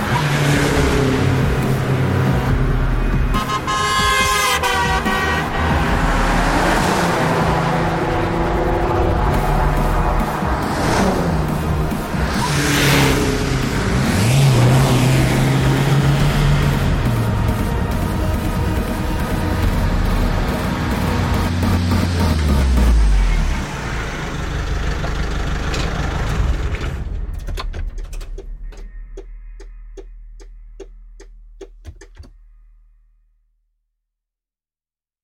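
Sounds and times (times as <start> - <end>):
cars, SUVs and vans: 0.0 - 27.2.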